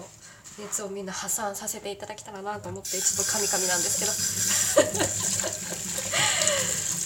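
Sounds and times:
speech: 0.6s - 7.0s
washing dishes: 2.9s - 7.0s
laughter: 4.5s - 6.8s.

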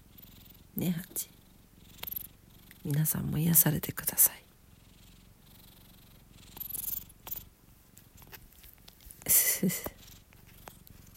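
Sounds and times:
cat purring: 0.0s - 11.1s
speech: 0.8s - 1.4s, 2.8s - 4.4s, 9.6s - 10.0s
scratchy rustle: 6.6s - 11.1s.

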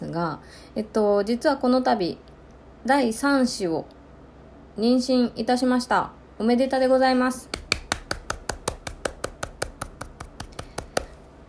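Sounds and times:
speech: 0.1s - 4.0s, 4.8s - 7.6s
hands clapping: 7.5s - 11.2s.

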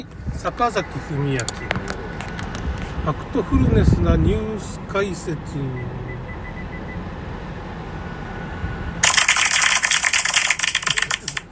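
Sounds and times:
speech: 0.0s - 1.9s, 3.0s - 6.1s
hand clapping: 9.0s - 11.5s.

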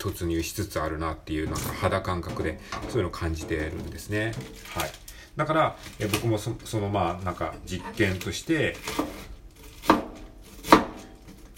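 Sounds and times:
speech: 0.0s - 10.0s
knife chopping through food while cooking: 8.8s - 11.5s.

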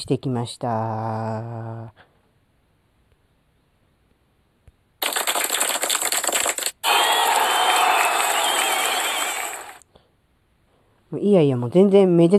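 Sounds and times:
speech: 0.0s - 2.1s, 11.1s - 12.3s
applause: 5.0s - 9.8s
cheering and whistles: 6.8s - 9.8s.

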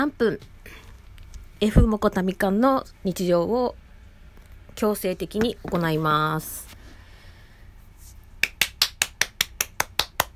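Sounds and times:
speech: 0.0s - 0.8s, 1.6s - 3.8s, 4.8s - 6.8s
hand clapping: 8.4s - 10.3s.

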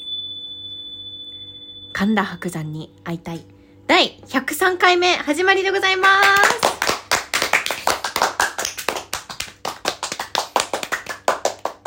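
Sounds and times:
speech: 2.0s - 6.8s
hand clapping: 6.0s - 11.8s.

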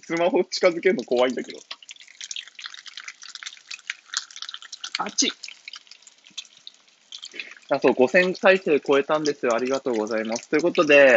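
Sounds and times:
speech: 0.0s - 1.8s, 5.0s - 5.5s, 7.7s - 11.1s
chicken karaage deep-frying in hot oil: 0.0s - 11.1s.

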